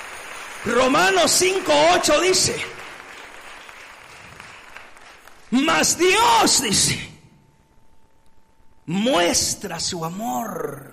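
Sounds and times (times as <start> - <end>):
church congregation applauding during a Spanish-language sermon: 0.0 - 6.6
speech: 0.6 - 2.8, 5.6 - 7.1, 8.9 - 10.9.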